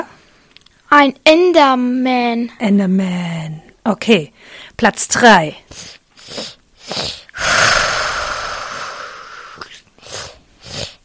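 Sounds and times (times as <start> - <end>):
speech: 0.9 - 7.1
video-game ender dragon growl: 7.4 - 9.6.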